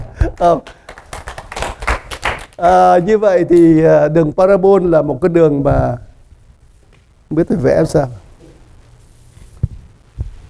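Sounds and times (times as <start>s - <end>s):
audience clapping: 0.0s - 3.2s
speech: 0.4s - 0.8s, 2.6s - 6.1s, 7.3s - 8.2s.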